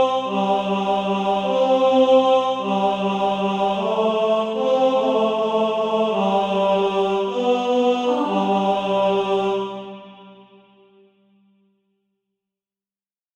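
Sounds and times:
tenor SATB practice part: 0.0 - 10.4.

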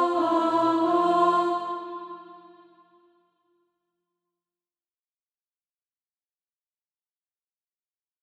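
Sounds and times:
alto voice singing practice music: 0.0 - 3.0.

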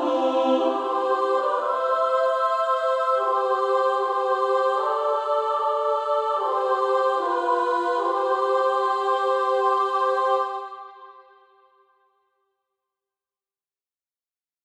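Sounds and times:
female choir singing soprano and alto: 0.0 - 11.4.

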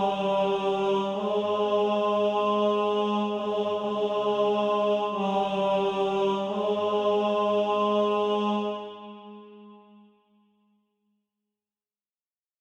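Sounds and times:
tenor voice singing SATB practice music: 0.0 - 9.6.

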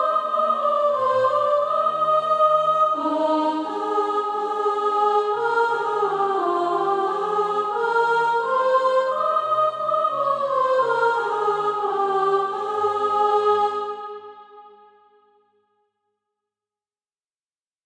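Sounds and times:
soprano singing SATB practice music: 0.0 - 14.2.

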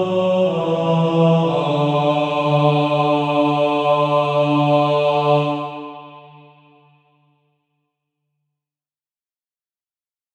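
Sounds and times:
male choir singing in TTBB voicing: 0.0 - 7.0.

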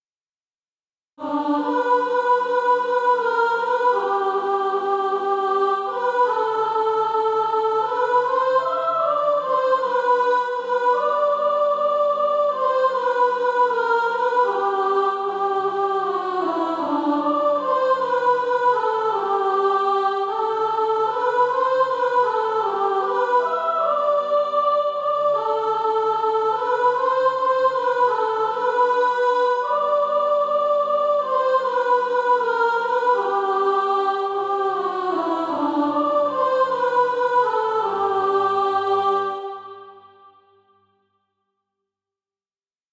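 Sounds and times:
soprano singing practice music: 1.2 - 40.0.

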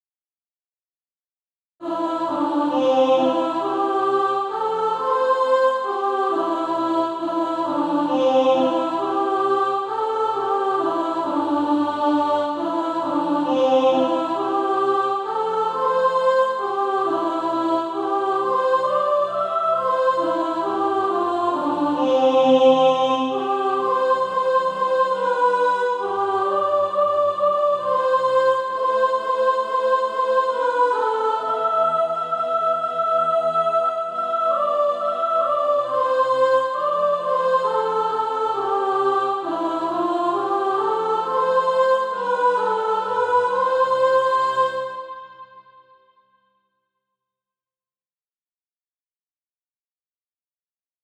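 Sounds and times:
soprano singing practice music: 1.8 - 45.6.

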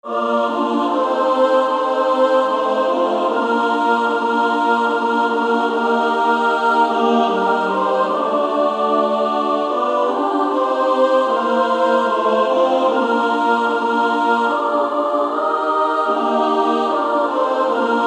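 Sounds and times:
female SSAA choir singing: 0.0 - 18.0.

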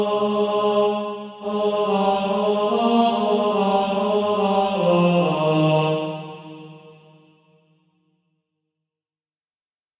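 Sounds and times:
tenor singing: 0.0 - 7.1.

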